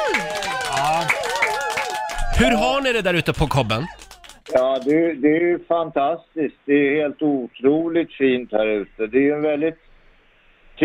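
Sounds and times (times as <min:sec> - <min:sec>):
small group clapping: 0:00.0 - 0:05.1
speech: 0:02.4 - 0:09.8.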